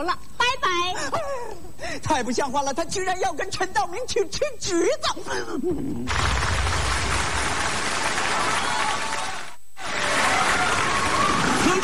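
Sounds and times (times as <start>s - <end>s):
speech: 0.0s - 0.3s, 2.0s - 6.8s
audience applause: 6.1s - 11.8s.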